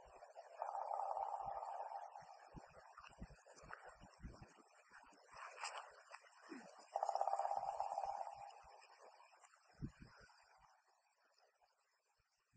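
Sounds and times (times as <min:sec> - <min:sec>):
black woodpecker call: 0:00.6 - 0:02.3, 0:07.0 - 0:08.6.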